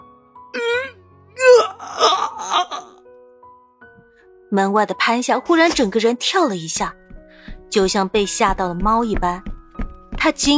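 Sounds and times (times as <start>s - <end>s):
hoarse cry of pain: 0.6s - 3.0s
speech: 4.5s - 7.0s, 7.7s - 9.5s, 10.2s - 10.5s.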